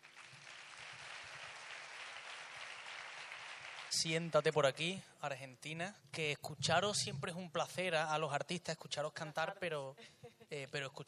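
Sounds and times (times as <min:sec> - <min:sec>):
audience applause: 0:00.0 - 0:04.2
speech: 0:04.0 - 0:11.0.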